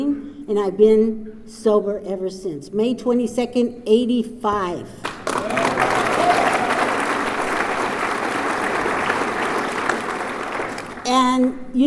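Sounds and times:
speech: 0.0 - 6.0, 11.4 - 11.8
meeting audience applause: 5.1 - 11.2.

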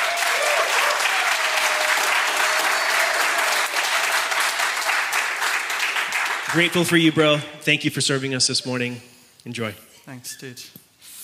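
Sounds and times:
audience applause: 0.0 - 7.2
speech: 6.5 - 10.8.

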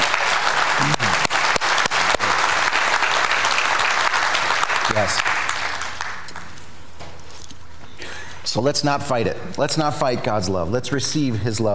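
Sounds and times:
audience applauding: 0.0 - 6.6
speech: 5.0 - 5.4, 8.5 - 11.7.

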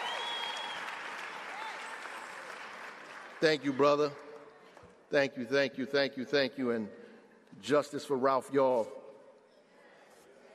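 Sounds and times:
audience applause: 0.0 - 3.8
speech: 3.4 - 4.2, 5.1 - 9.0.

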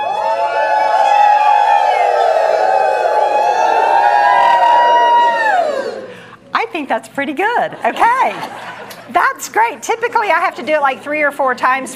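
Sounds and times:
large crowd screaming and cheering during a wave: 0.0 - 6.2
speech: 6.9 - 11.9
laughter: 7.7 - 9.2.

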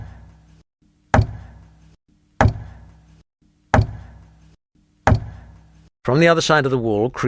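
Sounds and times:
regular knocking from behind a wall: 1.1 - 1.7, 2.4 - 3.0, 3.7 - 4.3, 5.1 - 5.6
speech: 6.1 - 7.2.

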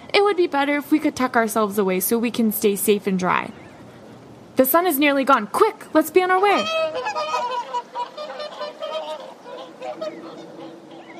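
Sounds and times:
speech: 0.1 - 3.6, 4.6 - 7.2
swans honking: 6.1 - 11.1.

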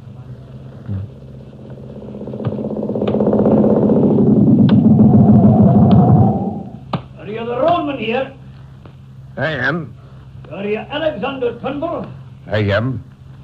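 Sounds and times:
motorcycle engine rumbling: 0.0 - 6.9
speech: 9.4 - 13.1.

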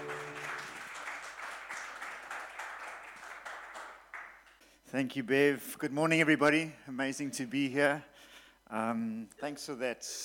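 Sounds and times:
crowd applauding: 0.0 - 4.6
speech: 4.9 - 8.1, 8.7 - 10.2.

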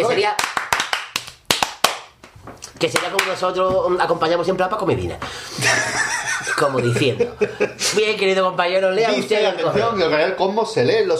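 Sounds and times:
speech: 0.0 - 0.5, 2.8 - 11.1
sharp hand claps: 0.2 - 3.4
laughter: 5.6 - 8.0.

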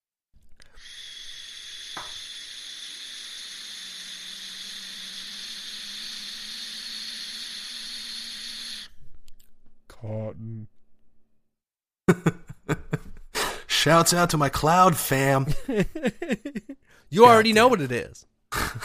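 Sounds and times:
vape hit inhale and exhale hiss: 0.6 - 9.0
speech: 10.0 - 10.8, 13.8 - 18.3
laughter: 12.1 - 13.2, 15.4 - 16.8.

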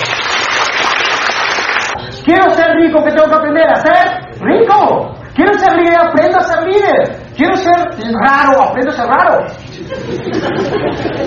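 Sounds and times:
audience applause: 0.0 - 2.0
speech: 2.3 - 11.2
laughter: 9.6 - 11.2.

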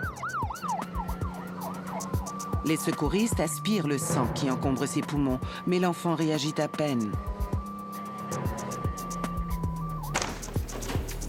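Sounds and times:
ambulance siren wailing while rushing a child to a children's hospital: 0.0 - 10.2
speech: 2.6 - 7.4.

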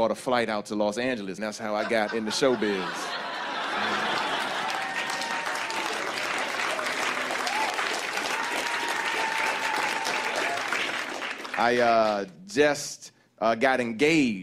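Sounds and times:
speech: 0.0 - 4.1, 11.6 - 14.4
laughter: 1.6 - 7.6
audience applause: 3.1 - 12.3.

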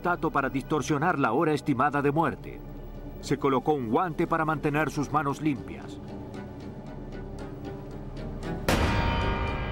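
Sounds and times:
speech: 0.0 - 6.2
low noise: 0.0 - 8.7
gunshot: 8.7 - 9.6.

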